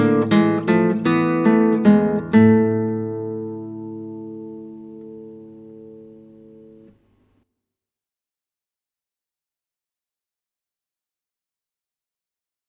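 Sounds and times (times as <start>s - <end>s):
classical guitar: 0.0s - 7.4s.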